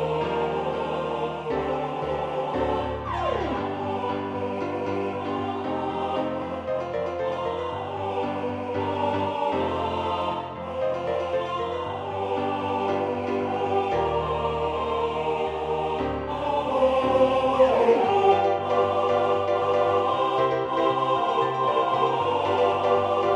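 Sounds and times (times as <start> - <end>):
MIDI choir singing: 0.0 - 23.3
MIDI piano: 0.0 - 23.3.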